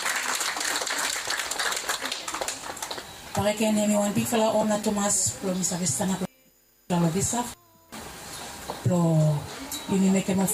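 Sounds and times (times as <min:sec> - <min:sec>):
applause: 0:00.0 - 0:03.5
speech: 0:03.4 - 0:06.3, 0:06.9 - 0:07.6, 0:08.9 - 0:10.5.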